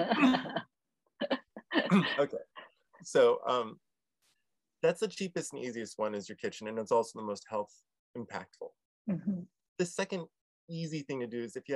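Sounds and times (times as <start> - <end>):
man coughing: 0.2 - 0.6, 1.9 - 2.4
speech: 2.0 - 3.8, 4.8 - 11.7.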